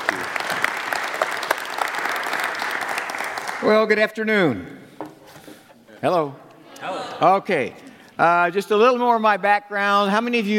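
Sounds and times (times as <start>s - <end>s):
audience applause welcoming a speaker to the stage: 0.0s - 3.8s
speech: 3.6s - 4.8s, 6.0s - 10.5s.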